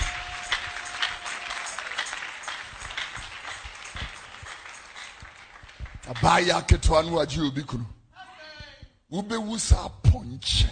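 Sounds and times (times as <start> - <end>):
audience clapping hands: 0.0 - 7.2
speech: 6.1 - 8.0, 9.1 - 10.7.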